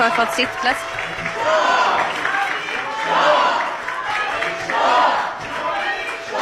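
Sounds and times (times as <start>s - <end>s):
Swedish parliament members applauding: 0.0s - 6.4s
audience shouting royalist slogan Javid Shah: 0.0s - 6.4s.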